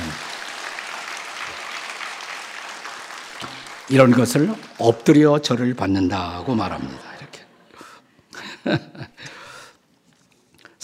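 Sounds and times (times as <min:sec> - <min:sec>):
audience applause: 0:00.0 - 0:05.3
speech: 0:03.9 - 0:07.1, 0:08.6 - 0:09.0
laughter: 0:06.5 - 0:09.3.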